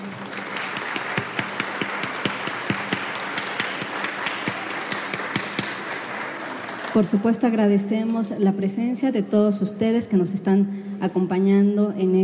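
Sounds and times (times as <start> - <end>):
audience applause: 0.0 - 7.2
speech: 7.0 - 12.2.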